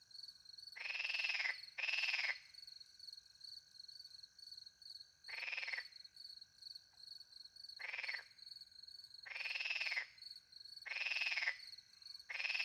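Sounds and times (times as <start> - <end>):
crickets chirping: 0.1 - 12.6
frogs croaking: 0.8 - 2.5, 5.3 - 6.0, 7.8 - 8.4, 9.2 - 10.2, 10.8 - 12.6.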